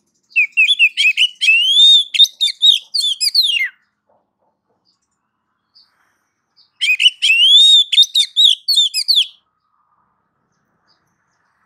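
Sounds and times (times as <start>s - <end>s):
Oriental magpie-robin singing: 0.0s - 4.0s, 6.6s - 9.4s.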